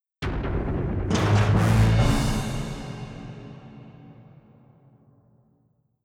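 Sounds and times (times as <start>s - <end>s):
fight music sting: 0.2s - 5.0s.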